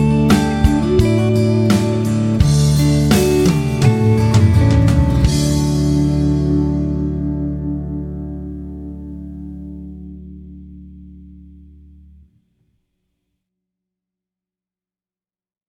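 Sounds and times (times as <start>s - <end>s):
D major triad vamp: 0.0s - 12.1s.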